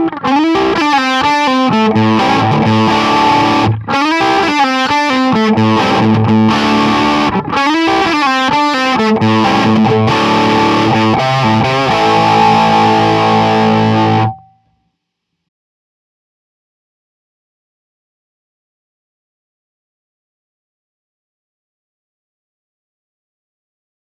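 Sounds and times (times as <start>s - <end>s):
dimed bassman amplifier: 0.0s - 14.8s.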